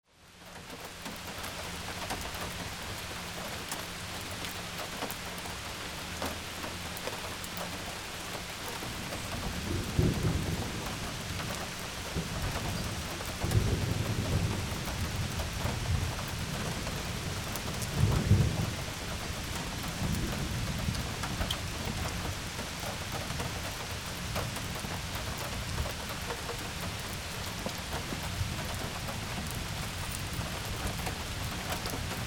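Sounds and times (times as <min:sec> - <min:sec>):
rain: 0:00.0 - 0:32.2.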